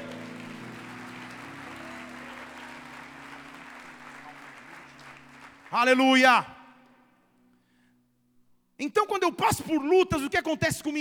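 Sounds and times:
sustained low musical drone: 0.0s - 5.7s
audience applause: 0.0s - 6.4s
speech: 5.7s - 6.5s, 8.9s - 11.0s.

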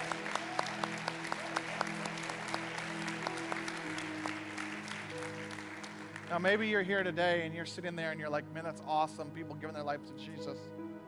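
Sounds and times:
audience applause: 0.0s - 6.7s
speech: 6.3s - 10.8s.

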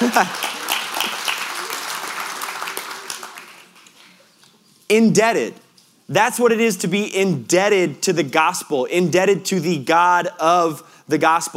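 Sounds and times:
crowd applauding with dense crackling clapping: 0.0s - 4.2s
speech: 0.2s - 0.4s, 4.9s - 11.5s.

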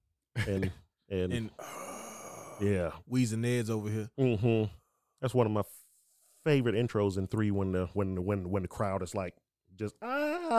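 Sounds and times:
speech: 0.4s - 1.8s, 2.6s - 5.8s, 6.4s - 10.5s
voice imitating a video game character's grunts: 1.4s - 3.0s, 10.0s - 10.5s.

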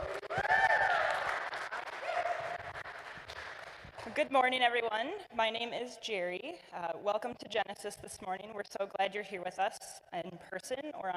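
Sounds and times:
church audience applauding the worship team: 0.0s - 4.0s
speech: 4.2s - 11.1s.

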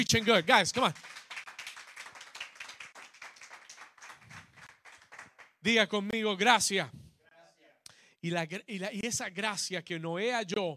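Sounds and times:
speech: 0.0s - 1.2s, 5.6s - 7.0s, 8.2s - 10.7s
loud applause: 0.0s - 5.5s.

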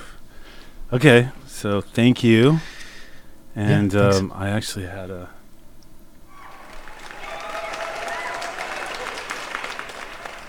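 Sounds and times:
speech: 0.9s - 2.7s, 3.6s - 5.4s
crowd applause: 6.3s - 10.4s.

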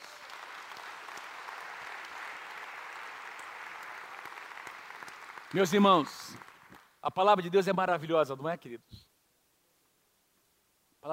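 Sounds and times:
audience applause: 0.0s - 6.9s
speech: 5.5s - 6.4s, 7.0s - 9.0s.

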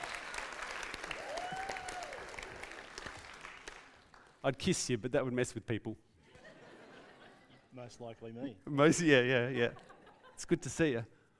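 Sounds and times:
faint audience applause welcoming a guest: 0.0s - 4.4s
speech: 4.4s - 6.1s, 7.8s - 11.2s
laughter: 6.2s - 7.8s, 9.5s - 10.5s.

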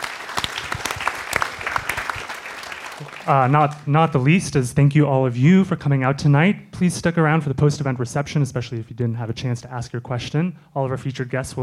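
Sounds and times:
audience applause: 0.0s - 3.9s
speech: 3.0s - 11.6s.

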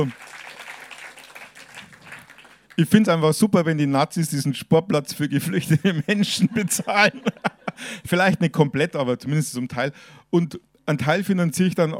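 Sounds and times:
speech: 0.0s - 0.2s, 2.8s - 11.9s
audience clapping: 0.0s - 3.1s
laughter: 5.8s - 7.9s.

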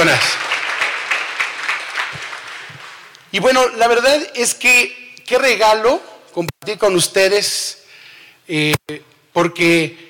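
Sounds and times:
speech: 0.0s - 0.4s, 3.3s - 7.8s, 8.5s - 10.0s
audience applause: 0.0s - 3.1s.

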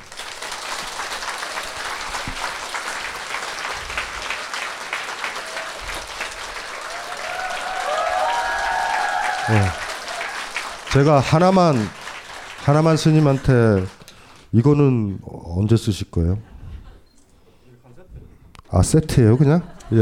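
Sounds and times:
vigorous audience applause: 0.0s - 14.4s
speech: 9.5s - 9.8s, 10.9s - 12.0s, 12.7s - 16.5s, 18.8s - 20.0s.

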